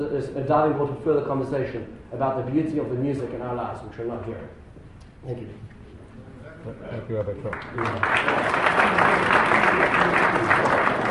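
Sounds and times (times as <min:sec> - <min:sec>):
speech: 0:00.0 - 0:04.6, 0:05.2 - 0:05.8, 0:06.6 - 0:10.7
audience applause: 0:07.4 - 0:11.0.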